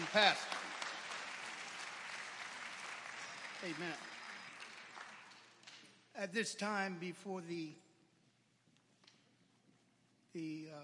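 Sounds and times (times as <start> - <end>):
crowd audience hand clapping: 0.0 - 6.1
speech: 0.1 - 0.6, 3.6 - 4.1, 6.2 - 7.8, 10.3 - 10.8.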